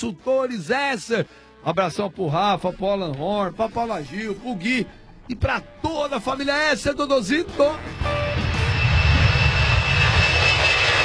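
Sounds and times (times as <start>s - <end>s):
speech: 0.0s - 8.2s
airplane passing overhead: 2.6s - 11.0s.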